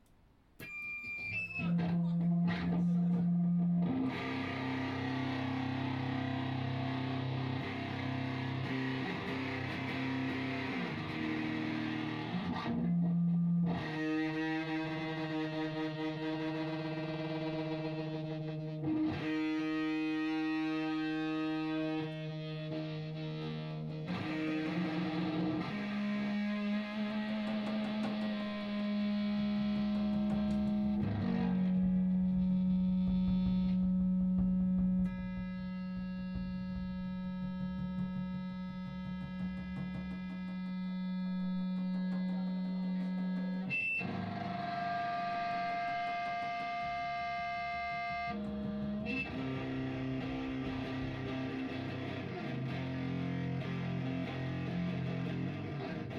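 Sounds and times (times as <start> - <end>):
noise: 0.0 - 56.1.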